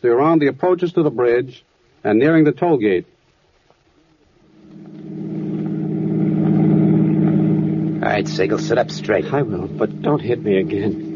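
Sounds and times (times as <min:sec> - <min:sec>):
speech: 0:00.0 - 0:03.2, 0:08.0 - 0:11.0
car engine humming as the car drives along: 0:04.4 - 0:11.1.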